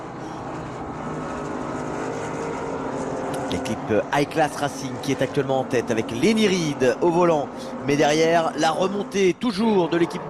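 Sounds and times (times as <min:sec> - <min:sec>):
race car engines roaring on the Le Mans circuit: 0:00.0 - 0:10.2
speech: 0:03.5 - 0:10.2.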